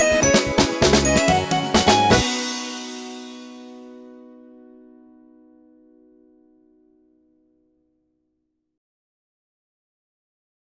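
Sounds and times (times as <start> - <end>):
instrumental folk song: 0.0 - 5.5.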